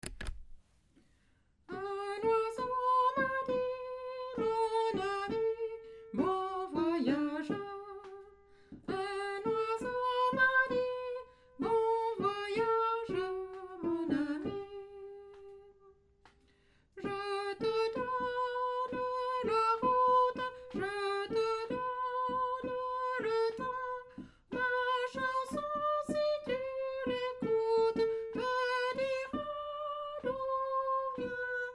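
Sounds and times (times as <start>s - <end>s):
soprano singing: 1.7s - 15.9s, 17.0s - 31.7s.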